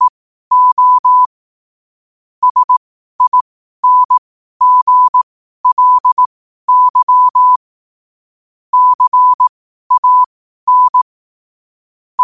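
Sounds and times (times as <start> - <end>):
morse code at 5 wpm: 0.0 - 1.3, 2.4 - 7.6, 8.7 - 11.1.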